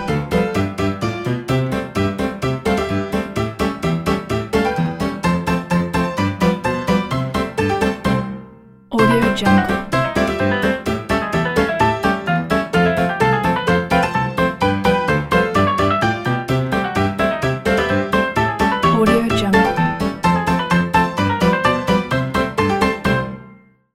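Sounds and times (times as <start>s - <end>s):
funny old piano loop: 0.0s - 23.4s.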